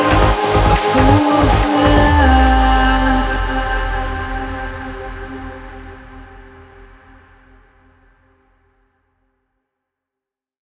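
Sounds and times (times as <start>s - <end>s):
uplifting trance music: 0.0s - 7.3s.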